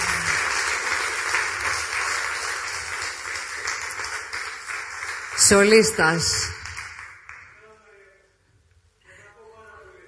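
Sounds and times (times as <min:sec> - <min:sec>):
audience applause: 0:00.0 - 0:07.5
speech: 0:05.5 - 0:06.6.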